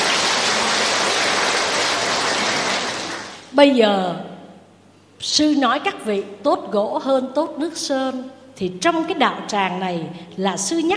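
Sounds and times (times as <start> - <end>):
audience applause: 0.0 - 3.5
speech: 3.6 - 4.2, 5.2 - 10.9.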